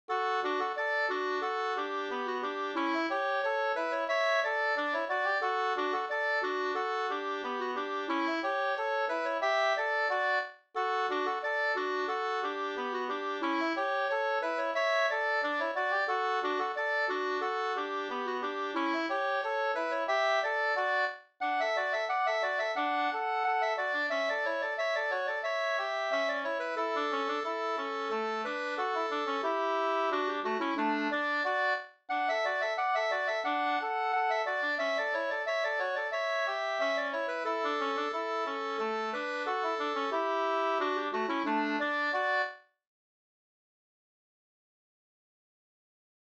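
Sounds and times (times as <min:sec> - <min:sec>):
polka in two-beat polska: 0:00.1 - 0:42.6.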